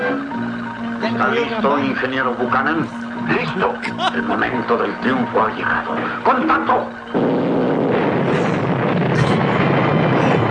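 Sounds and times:
speech: 0:01.0 - 0:07.4
explosion sound effect: 0:06.0 - 0:10.4.

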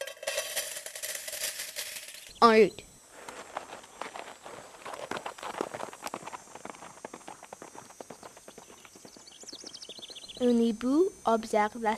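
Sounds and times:
speech: 0:02.4 - 0:02.9, 0:10.4 - 0:11.9
horses carrying riders walking on a hard road: 0:03.4 - 0:10.4
faint high chirp: 0:08.1 - 0:10.5.

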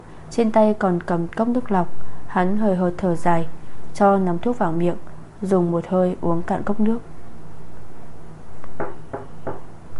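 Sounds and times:
low hum: 0:00.0 - 0:09.9
speech: 0:00.3 - 0:07.1
knocking on a hotel room door: 0:08.8 - 0:09.7.

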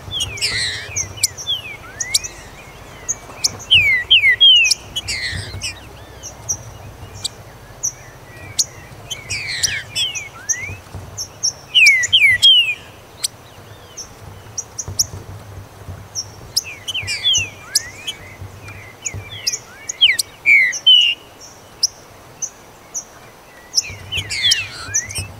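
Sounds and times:
green-winged saltator whistling: 0:00.0 - 0:13.8, 0:16.6 - 0:21.3, 0:23.6 - 0:25.3
high ticking calls: 0:00.0 - 0:22.4, 0:23.1 - 0:25.3.

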